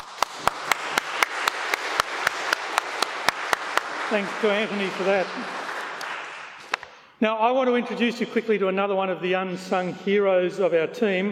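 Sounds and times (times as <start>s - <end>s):
audience clapping: 0.0s - 7.0s
speech: 4.1s - 5.6s, 7.2s - 11.3s.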